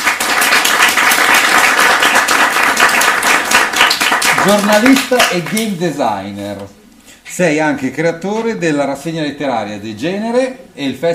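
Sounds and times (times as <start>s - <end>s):
audience applause: 0.0s - 5.7s
speech: 4.4s - 6.8s, 7.4s - 11.1s.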